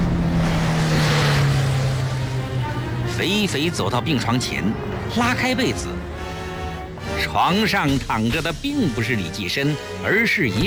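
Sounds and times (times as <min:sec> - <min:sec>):
car driving off quickly: 0:00.0 - 0:08.3
speech: 0:03.2 - 0:06.1, 0:07.2 - 0:10.6.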